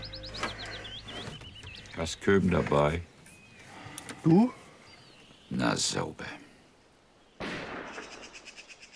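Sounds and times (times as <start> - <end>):
speech: 2.0 - 3.1, 4.2 - 4.6, 5.5 - 6.4
distant gunfire: 7.4 - 8.6.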